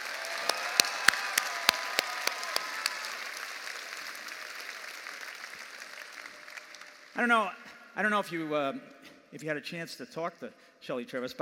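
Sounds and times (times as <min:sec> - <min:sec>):
audience applause: 0:00.0 - 0:07.2
speech: 0:07.2 - 0:11.4.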